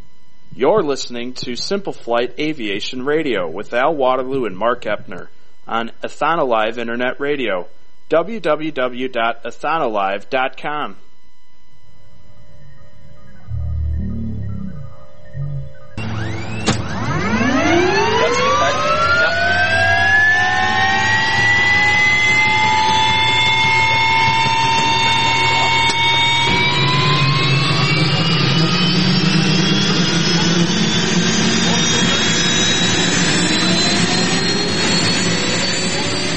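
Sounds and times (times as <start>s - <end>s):
speech: 0.6s - 11.1s
aircraft engine revving for takeoff: 13.5s - 36.3s.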